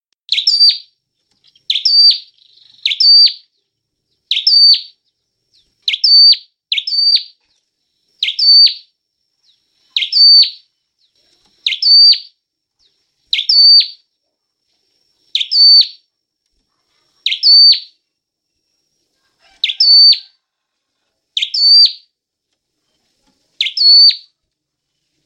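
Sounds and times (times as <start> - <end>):
Hill prinia singing whistled phrases: 0.3 - 0.9, 1.7 - 3.5, 4.3 - 5.0, 5.8 - 7.4, 8.2 - 8.9, 10.0 - 10.7, 11.6 - 12.3, 13.3 - 14.0, 15.3 - 16.0, 17.2 - 18.0, 19.6 - 20.3, 21.4 - 22.1, 23.6 - 24.3.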